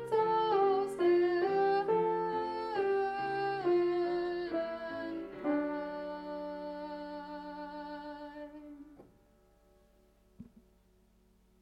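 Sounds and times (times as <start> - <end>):
soprano voice singing: 0.0 - 9.1.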